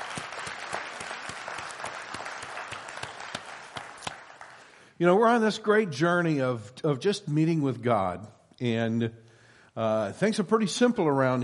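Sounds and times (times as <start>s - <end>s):
crowd applauding: 0.0s - 4.8s
speech: 5.0s - 9.2s, 9.8s - 11.4s.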